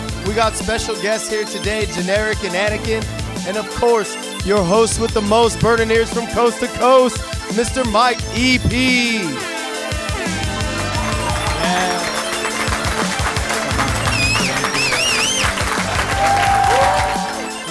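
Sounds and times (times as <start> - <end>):
speech: 0.2 - 9.5, 11.7 - 12.1
audience cheering: 9.9 - 17.6
audience applause: 10.1 - 17.6
audience whistles: 11.1 - 12.7, 13.8 - 17.6.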